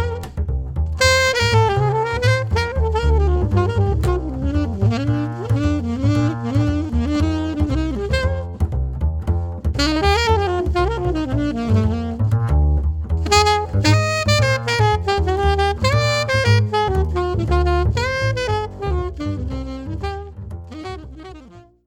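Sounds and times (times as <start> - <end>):
bass saxophone: 0.0 - 21.8.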